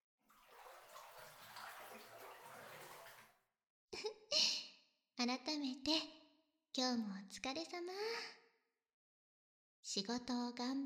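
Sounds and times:
water sloshing and splashing in a bathtub: 0.2 - 3.5
speech: 5.2 - 6.2, 6.8 - 8.4, 9.9 - 10.8.

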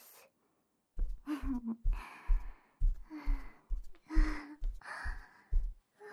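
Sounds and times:
ASMR ear cleaning: 1.0 - 5.8.

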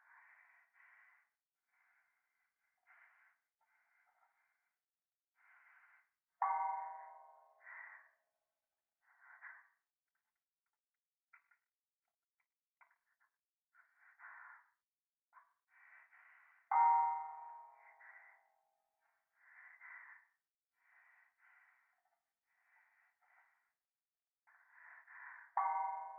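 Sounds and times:
person breathing close to the right ear in a toilet: 0.0 - 4.8, 5.4 - 8.2, 13.8 - 14.8, 15.4 - 23.8, 24.5 - 26.1.

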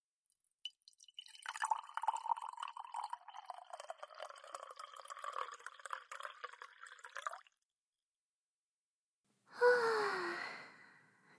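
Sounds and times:
Darjeeling tea being poured into a cup: 0.7 - 7.7
breathy human sigh: 9.6 - 11.0.

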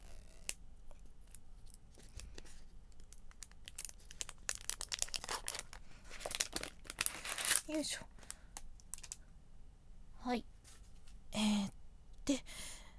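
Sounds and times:
plastic film peeling along perforation: 1.3 - 9.2
speech: 7.8 - 8.1, 10.2 - 10.5, 11.4 - 12.6.

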